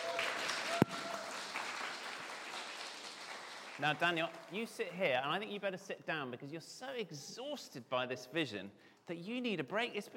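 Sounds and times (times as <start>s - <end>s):
audience applause: 0.0s - 4.6s
speech: 3.8s - 10.1s.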